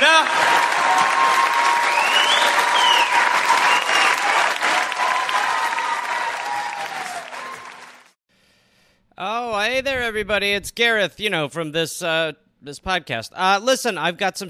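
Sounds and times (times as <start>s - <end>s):
audience applause in a standing ovation: 0.0s - 8.2s
speech: 9.8s - 14.4s.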